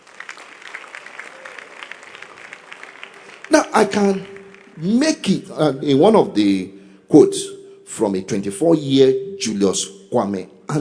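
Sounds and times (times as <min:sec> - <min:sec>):
audience clapping: 0:00.0 - 0:05.7
speech: 0:03.5 - 0:10.8.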